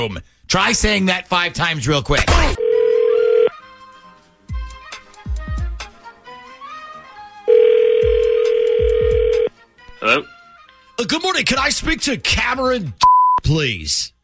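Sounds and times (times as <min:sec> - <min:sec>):
speech: 0:00.0 - 0:02.6, 0:11.0 - 0:14.2
telephone ringing during outgoing call: 0:02.6 - 0:03.5, 0:07.5 - 0:09.5.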